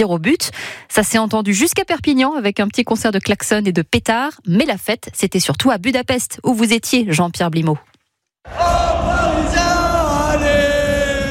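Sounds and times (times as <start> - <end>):
speech: 0.0 - 9.6
football supporters singing a chant in stadium corridors: 8.5 - 11.2.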